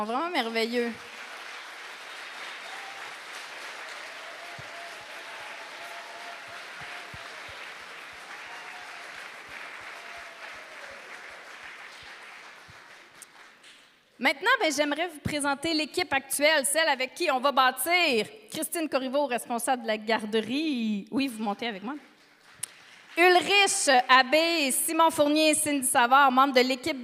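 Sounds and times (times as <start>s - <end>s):
speech: 0.0s - 1.1s, 14.2s - 22.1s, 23.2s - 27.0s
crowd applause: 0.9s - 13.9s, 22.2s - 23.5s
faint cheering: 2.0s - 12.4s.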